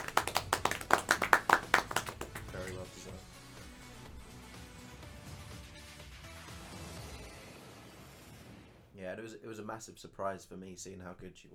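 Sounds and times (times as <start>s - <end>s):
round of applause hand claps: 0.0s - 3.2s
speech: 9.3s - 11.5s.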